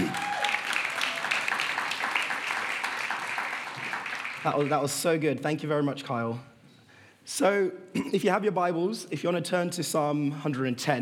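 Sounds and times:
audience applause: 0:00.0 - 0:04.9
speech: 0:04.4 - 0:06.5, 0:07.3 - 0:11.0.

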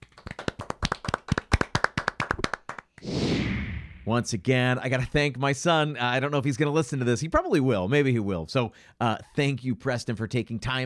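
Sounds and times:
hand clapping applause: 0:00.0 - 0:03.0
speech: 0:04.1 - 0:10.8.

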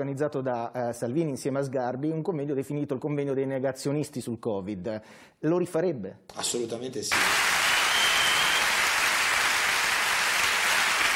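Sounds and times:
speech: 0:00.0 - 0:07.6
audience applause: 0:07.1 - 0:11.1.

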